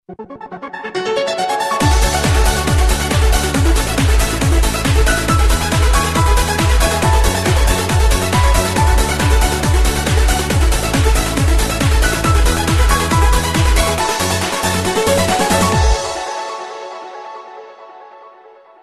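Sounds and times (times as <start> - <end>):
trance music mix: 0.0 - 18.8.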